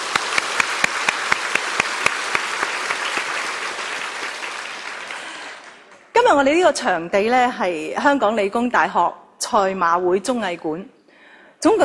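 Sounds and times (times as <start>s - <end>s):
audience applause: 0.0s - 6.1s
speech: 6.3s - 11.0s, 11.6s - 11.8s.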